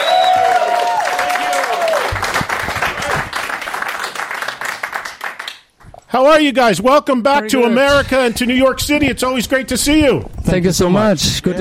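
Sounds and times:
audience applause for two rock band members: 0.0 - 5.7
speech: 6.1 - 11.5.

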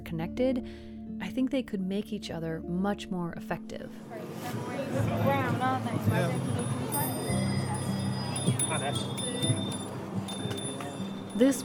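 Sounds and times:
speech: 0.1 - 7.4, 8.4 - 9.7, 11.4 - 11.6
many bicycle bells ringing: 5.9 - 11.6.

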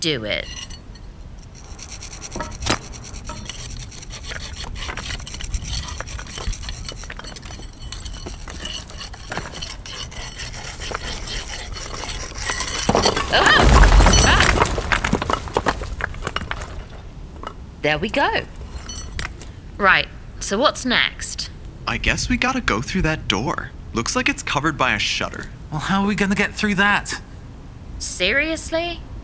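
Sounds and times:
speech: 0.0 - 0.6, 17.8 - 18.6, 19.8 - 21.2, 21.9 - 27.2, 28.2 - 29.1
cement being chipped away around bricks: 0.4 - 19.6.

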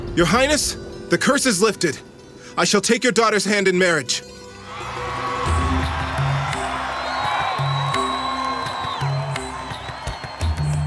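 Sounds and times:
speech: 0.2 - 4.3
crowd cheering in jubilation: 4.6 - 10.8.

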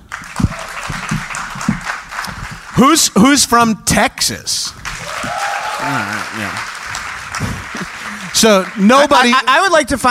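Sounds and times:
audience applause: 0.0 - 3.1, 4.7 - 9.6
speech: 2.8 - 4.8, 5.8 - 6.8, 7.4 - 10.1
laughter: 5.8 - 6.7, 7.3 - 8.7.

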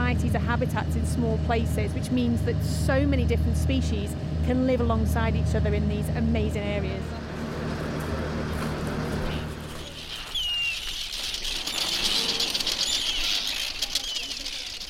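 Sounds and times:
low rumble: 0.0 - 10.3
speech: 0.1 - 7.2
Arctic tern colony calling: 6.9 - 14.8
fluttering wing noise of Arctic terns: 7.1 - 14.8.

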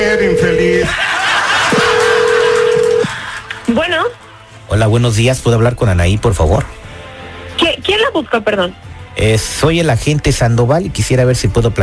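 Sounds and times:
telephone line tone during dialing: 0.0 - 0.9, 1.7 - 3.1
speech: 0.4 - 1.2, 3.7 - 6.8, 8.2 - 11.8
laughter: 0.4 - 3.7.

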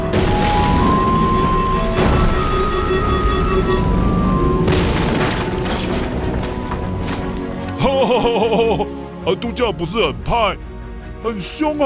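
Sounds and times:
repeated explosions blasting an asteroid: 0.1 - 7.9
laughter: 7.8 - 8.9
speech: 9.3 - 11.8.

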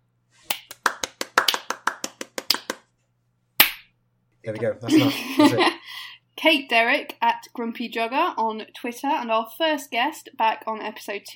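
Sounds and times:
applause: 0.6 - 2.9
speech: 4.4 - 11.3
laughter: 4.6 - 6.0.

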